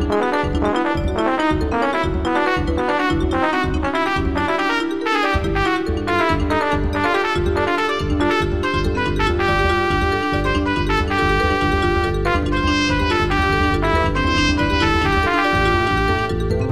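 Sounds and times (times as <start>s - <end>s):
synth jazz for trumpet, bass and vibes: 0.0s - 16.6s.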